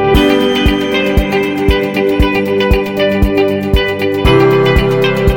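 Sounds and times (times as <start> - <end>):
positive corporate dance music: 0.1 - 5.3.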